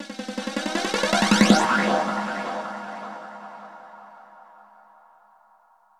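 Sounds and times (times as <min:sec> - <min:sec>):
ambient drum loop: 0:00.0 - 0:03.9.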